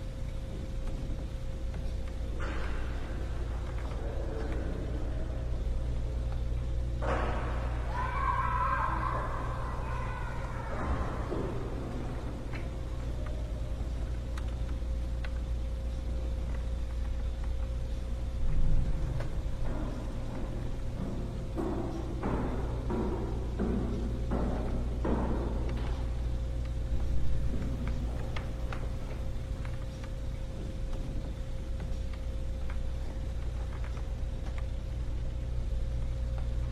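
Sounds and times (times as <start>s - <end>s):
ambience inside a house: 0.0s - 36.6s.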